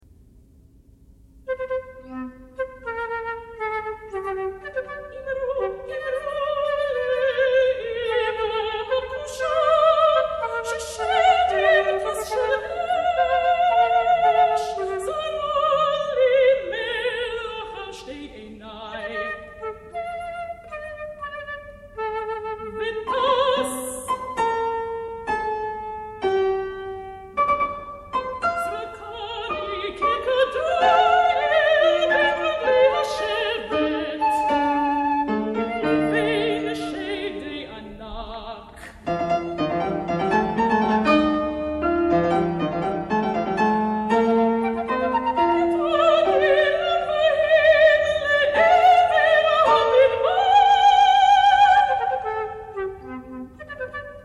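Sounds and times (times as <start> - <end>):
piano: 0.0 - 54.2
flute: 1.5 - 18.0, 18.9 - 24.4, 28.3 - 37.6, 44.1 - 54.2
soprano singing in Hebrew: 1.5 - 54.2.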